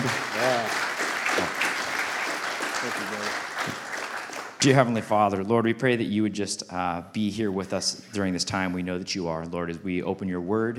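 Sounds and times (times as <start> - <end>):
audience applause: 0.0 - 5.0
speech: 4.6 - 10.7.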